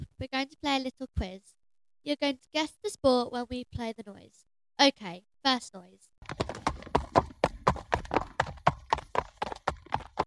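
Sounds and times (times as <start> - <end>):
speech: 0.2 - 6.5
horse hooves clip-clopping on a hard surface: 6.2 - 10.2.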